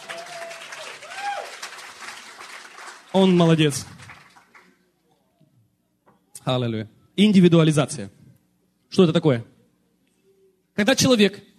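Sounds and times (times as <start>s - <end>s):
church congregation clapping for the translator during a sermon: 0.0s - 4.8s
speech: 3.1s - 4.0s, 6.5s - 8.2s, 9.0s - 9.5s, 10.8s - 11.5s.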